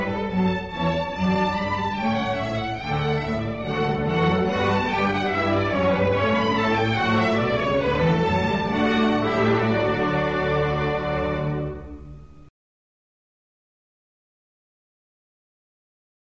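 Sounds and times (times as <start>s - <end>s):
gavotte: 0.0s - 12.5s.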